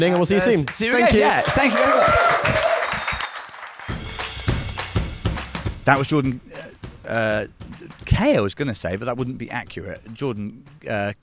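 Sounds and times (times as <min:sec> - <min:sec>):
speech: 0:00.0 - 0:02.8, 0:05.9 - 0:07.6, 0:08.2 - 0:11.2
audience applause: 0:00.1 - 0:04.9
person whooping: 0:01.5 - 0:03.3.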